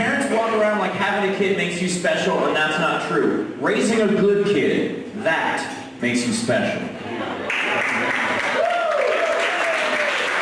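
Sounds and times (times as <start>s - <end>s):
speech: 0.6s - 7.4s
audience applauding: 7.4s - 10.4s.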